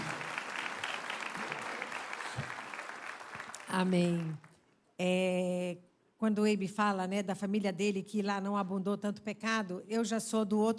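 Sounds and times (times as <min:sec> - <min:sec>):
applause: 0:00.0 - 0:04.6
speech: 0:03.7 - 0:04.4, 0:05.0 - 0:10.7.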